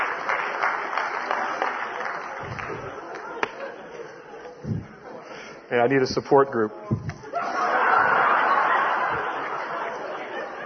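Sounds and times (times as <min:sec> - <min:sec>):
audience clapping: 0:00.0 - 0:03.7
laughter: 0:01.4 - 0:05.3, 0:07.0 - 0:10.6
speech: 0:05.7 - 0:07.1.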